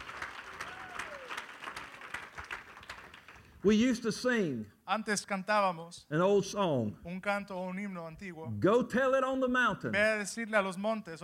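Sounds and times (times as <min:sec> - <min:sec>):
audience applause: 0:00.0 - 0:03.6
speech: 0:03.6 - 0:11.2.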